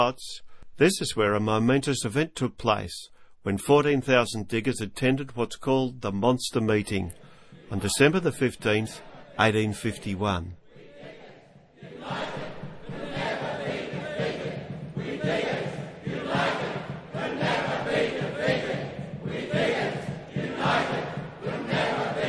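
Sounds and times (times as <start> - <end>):
speech: 0.0 - 10.6, 11.8 - 12.4
enthusiastic crowd chanting: 7.4 - 9.6, 10.6 - 22.2.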